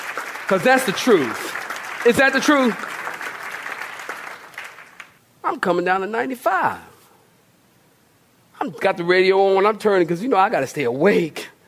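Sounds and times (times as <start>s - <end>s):
crowd applauding: 0.0s - 5.2s
speech: 0.5s - 2.9s, 5.5s - 6.9s, 8.6s - 11.5s.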